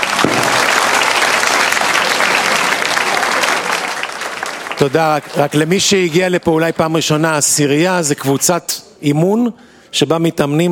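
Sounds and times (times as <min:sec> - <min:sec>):
audience applause: 0:00.0 - 0:06.7
speech: 0:04.8 - 0:10.7.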